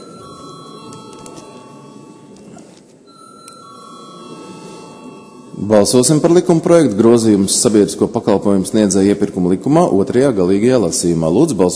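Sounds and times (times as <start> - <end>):
electronic bell ringing in the Latvian parliament chamber before a vote: 0.0 - 6.8
speech: 5.6 - 11.7.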